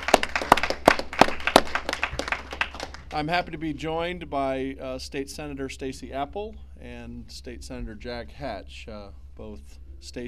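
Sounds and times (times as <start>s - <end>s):
audience applause: 0.0s - 3.3s
speech: 3.1s - 10.2s.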